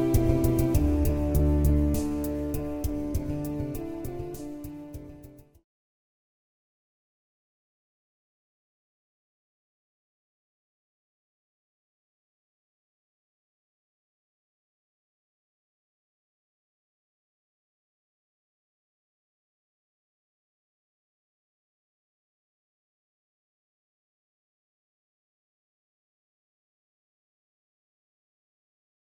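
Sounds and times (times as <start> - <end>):
instrumental music: 0.0 - 5.6.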